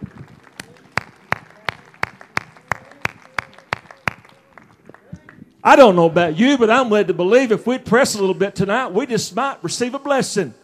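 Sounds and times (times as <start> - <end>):
audience hand clapping: 0.0 - 5.4
speech: 5.6 - 10.6.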